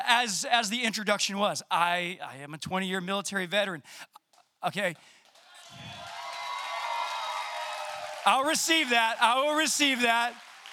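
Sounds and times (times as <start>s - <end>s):
speech: 0.1s - 6.0s, 8.2s - 10.4s
audience clapping: 4.8s - 10.7s.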